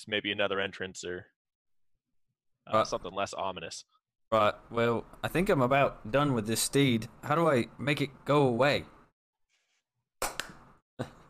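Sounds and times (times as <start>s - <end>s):
speech: 0.0s - 1.4s, 2.7s - 9.0s
hand claps: 10.2s - 10.6s.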